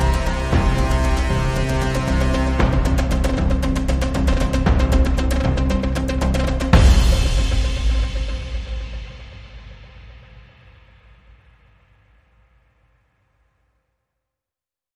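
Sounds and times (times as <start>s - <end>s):
pressured tension music without guitars: 0.0s - 10.3s.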